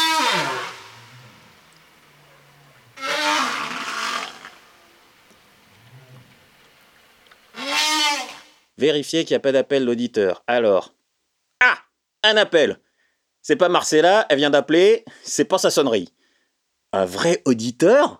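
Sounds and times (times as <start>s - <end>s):
whale sounds: 0.0s - 6.6s, 7.5s - 8.6s
speech: 8.8s - 11.0s, 11.6s - 12.8s, 13.4s - 16.2s, 16.9s - 18.1s.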